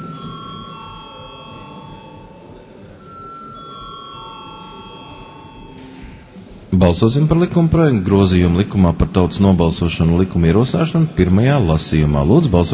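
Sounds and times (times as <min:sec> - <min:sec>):
bell ringing in a parliament session before a vote: 0:00.0 - 0:06.4
low murmur in the parliament chamber: 0:00.0 - 0:12.7
speech: 0:06.8 - 0:12.7.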